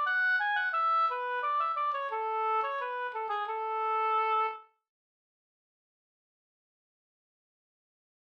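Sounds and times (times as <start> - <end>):
folk walking tune from Leksand: 0.0 - 4.7.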